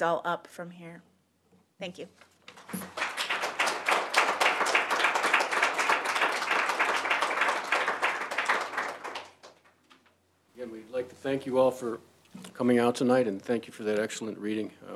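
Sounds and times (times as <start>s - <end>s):
speech: 0.0s - 1.1s, 1.8s - 3.0s, 10.6s - 14.9s
audience applause after a reading: 2.6s - 9.7s.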